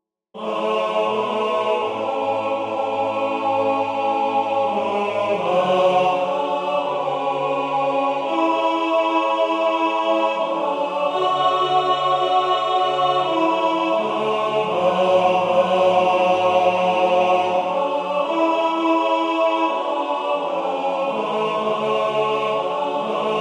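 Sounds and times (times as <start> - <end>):
tenor chanting: 0.4 - 23.4.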